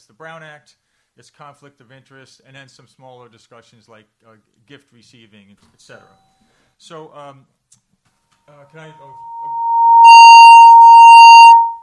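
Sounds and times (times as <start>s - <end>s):
speech: 0.1s - 7.8s, 8.5s - 9.6s
electronic alarm tone: 8.8s - 11.8s.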